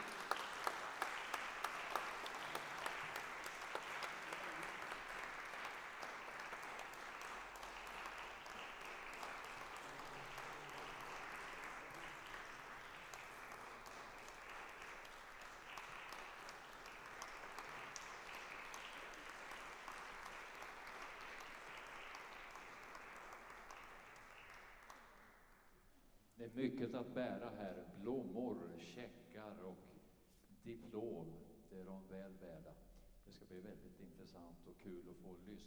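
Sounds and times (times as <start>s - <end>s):
big round of applause: 0.0s - 25.9s
speech: 26.4s - 30.0s, 30.6s - 35.6s.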